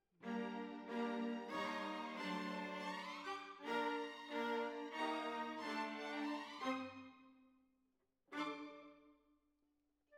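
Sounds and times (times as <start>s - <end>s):
violas playing: 0.2s - 7.0s.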